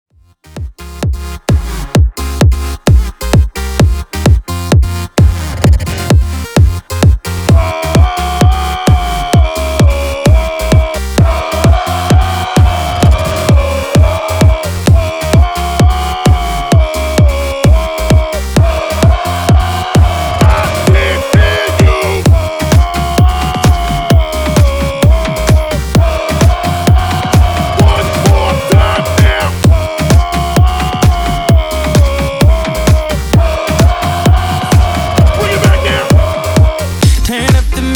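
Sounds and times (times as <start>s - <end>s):
hype intro music at 130 bpm: 0.4s - 37.8s.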